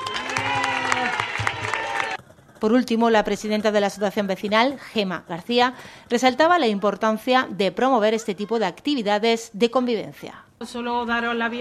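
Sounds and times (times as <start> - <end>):
audience applause at a neighbourhood community gathering: 0.0 - 2.2
voices and cheers: 0.0 - 2.2
speech: 2.6 - 11.6.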